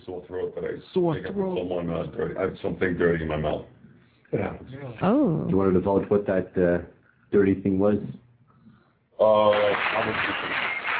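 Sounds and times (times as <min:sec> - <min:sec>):
speech: 0:00.2 - 0:08.2, 0:09.2 - 0:10.7
audience applauding during an interview: 0:09.4 - 0:10.9.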